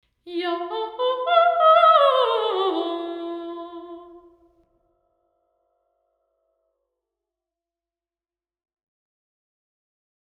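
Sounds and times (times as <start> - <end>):
person singing: 0.3 - 4.4.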